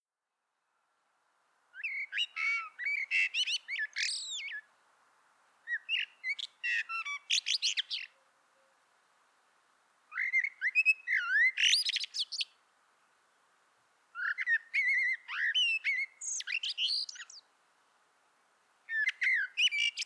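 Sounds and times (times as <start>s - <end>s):
Common blackbird song: 1.8s - 4.7s, 5.7s - 8.8s, 10.1s - 12.6s, 14.1s - 17.5s, 18.9s - 20.0s.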